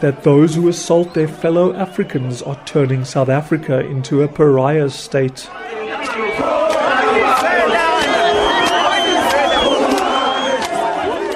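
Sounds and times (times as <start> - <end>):
speech: 0.0 - 6.6
angry crowd shouting and chanting: 0.0 - 11.3
men screaming: 5.5 - 11.3.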